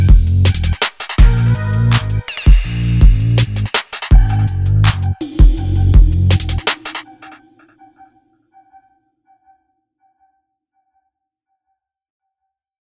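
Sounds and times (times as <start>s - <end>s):
music beat: 0.0s - 8.1s.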